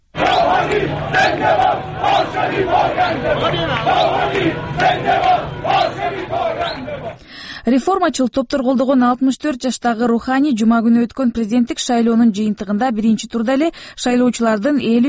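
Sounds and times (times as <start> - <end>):
crowd of Hassan Rouhani's supporters celebrating in Tehran, shouting and chanting: 0.1 - 7.2
speech: 0.9 - 5.3, 7.6 - 15.0.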